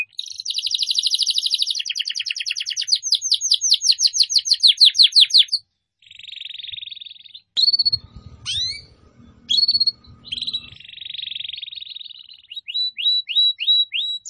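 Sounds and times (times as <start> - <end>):
Atlantic canary singing: 0.0 - 14.2
low background hum: 7.6 - 10.8.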